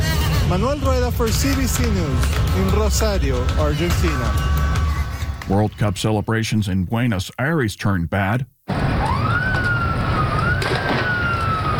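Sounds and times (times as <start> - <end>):
speech: 0.5 - 4.6, 5.5 - 8.5
police breaking up a street crowd: 1.3 - 6.2, 8.7 - 11.7.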